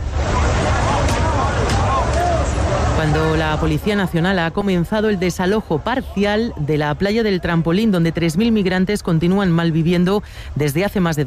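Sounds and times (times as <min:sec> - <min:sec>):
crowd hubbub during beach eviction: 0:00.0 - 0:11.2
rumbling surf: 0:00.0 - 0:11.2
wind: 0:00.0 - 0:11.2
people shouting: 0:00.2 - 0:03.6
speech: 0:03.0 - 0:11.2.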